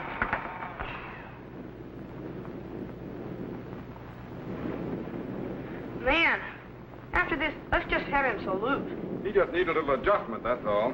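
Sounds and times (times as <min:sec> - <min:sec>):
thunder and lightning storm: 0:00.0 - 0:10.9
speech: 0:07.4 - 0:10.9.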